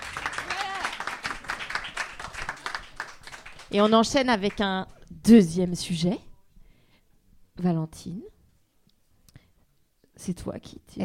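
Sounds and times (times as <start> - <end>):
group clapping: 0.0 - 4.8
brief higher-pitched vocal cheer or whoop: 0.2 - 1.2
speech: 3.7 - 6.3, 7.6 - 8.3, 10.2 - 11.0.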